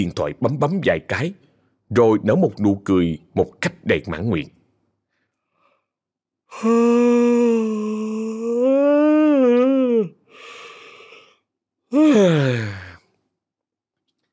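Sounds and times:
speech: 0.0 - 4.6, 6.5 - 7.9, 11.9 - 12.8
person yawning on waking in a large bed: 6.5 - 13.1.

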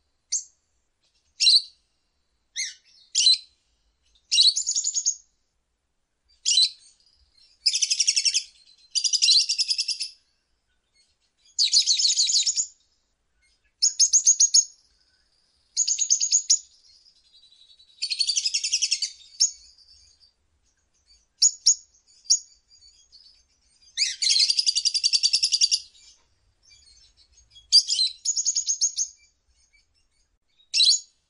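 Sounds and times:
lovebird ngekek song: 1.1 - 1.8, 2.5 - 3.5, 4.1 - 5.2, 6.3 - 12.8, 13.4 - 31.2.

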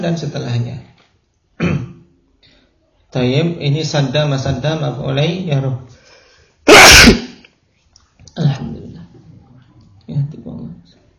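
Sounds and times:
speech: 0.0 - 0.9, 1.6 - 1.9, 3.1 - 6.0, 6.7 - 7.3, 8.4 - 8.6
sneeze: 1.6 - 2.0, 6.6 - 7.5.

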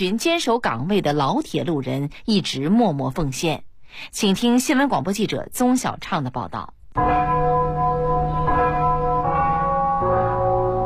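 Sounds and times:
speech: 0.0 - 7.3
railway station clock tower chime melody: 7.0 - 10.8.

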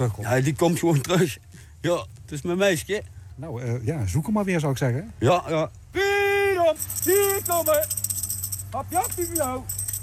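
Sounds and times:
speech: 0.0 - 6.1, 6.7 - 8.0, 8.7 - 9.8
tambourine being shaken to lure raven: 6.7 - 10.0.

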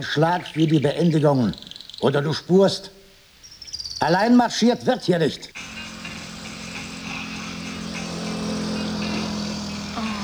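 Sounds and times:
speech: 0.0 - 3.0, 4.0 - 5.7
bus engine droning: 5.6 - 10.2.

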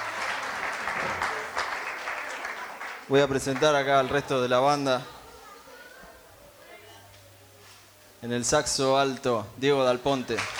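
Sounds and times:
audience applause at an afternoon concert: 0.0 - 4.1, 10.3 - 10.5
speech: 3.1 - 5.2, 8.2 - 10.5.

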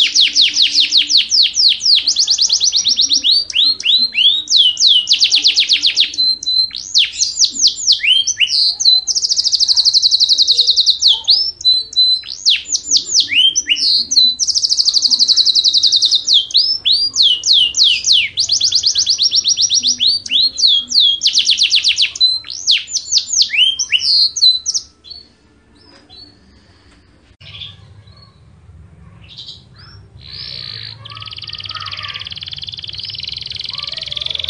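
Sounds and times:
Yorkshire canary singing long vigorous song: 0.0 - 34.4.

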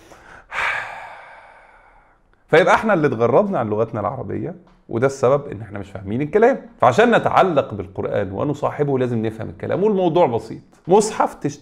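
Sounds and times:
man taking a deep breath: 0.0 - 2.3
speech: 2.5 - 11.6.

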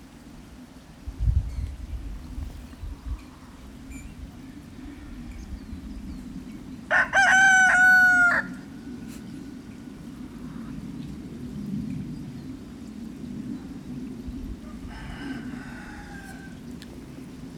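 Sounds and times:
rooster crowing: 6.9 - 8.7, 14.6 - 16.6.

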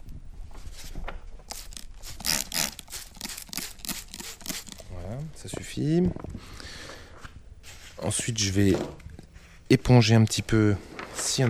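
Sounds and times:
paper sheets being lightly dampened: 1.4 - 5.0
speech: 5.4 - 6.3, 8.0 - 9.0, 9.7 - 11.4.

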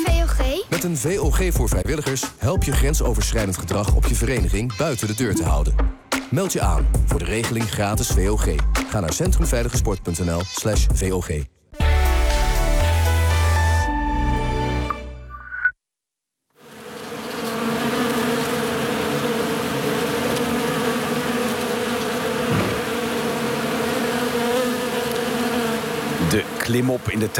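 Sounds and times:
music: 0.0 - 15.4
speech: 0.8 - 11.6, 26.3 - 27.3
bees buzzing: 16.6 - 27.3.

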